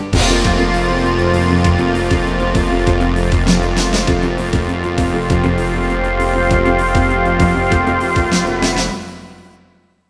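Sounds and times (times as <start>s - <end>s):
Yamaha XG SoftSynth S-YXG50 software synthesizer: 0.1s - 9.5s.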